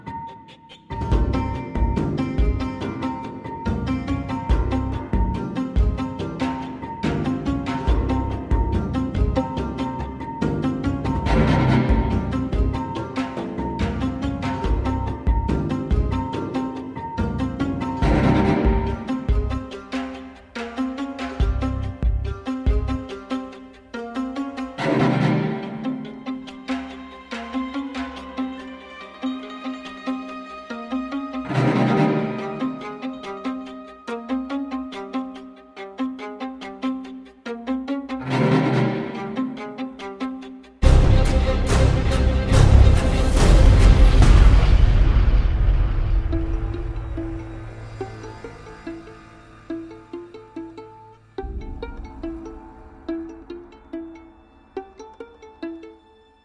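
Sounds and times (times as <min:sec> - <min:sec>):
background music: 0:00.0 - 0:56.4.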